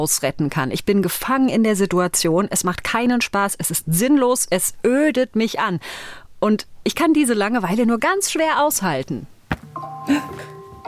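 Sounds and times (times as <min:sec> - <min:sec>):
speech: 0:00.0 - 0:10.5
alarm clock chime going off: 0:09.8 - 0:10.8.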